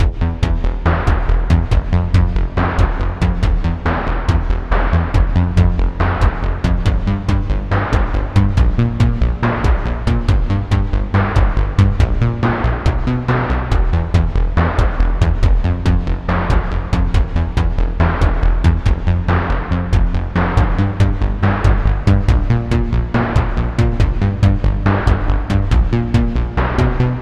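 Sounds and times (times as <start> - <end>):
battle sequence music: 0.0 - 27.1.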